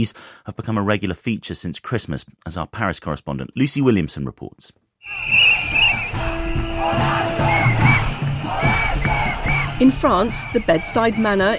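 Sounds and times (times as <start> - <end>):
speech: 0.0 - 5.4, 9.8 - 11.5
shrill whistles: 5.0 - 11.5
crowd chanting and shouting at a street protest: 5.1 - 11.5
amplified bullhorn tone: 5.8 - 10.2.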